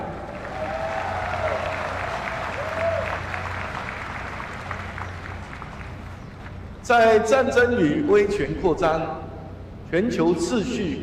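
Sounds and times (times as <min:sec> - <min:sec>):
warm applause: 0:00.0 - 0:06.2
speech: 0:06.9 - 0:09.2, 0:09.9 - 0:11.0.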